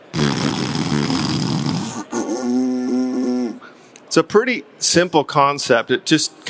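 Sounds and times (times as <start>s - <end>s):
raspy lip buzz into an elk call without its reed: 0.0s - 3.8s
speech: 4.2s - 6.4s.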